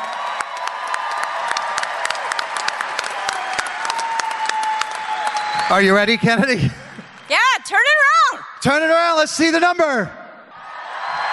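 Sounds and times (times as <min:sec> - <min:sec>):
big round of applause: 0:00.0 - 0:07.5
speech: 0:05.7 - 0:10.2.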